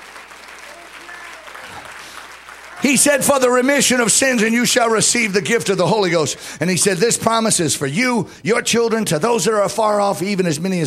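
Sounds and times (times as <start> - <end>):
congregation clapping hands during a church service: 0.0 - 5.4
speech: 2.8 - 10.8.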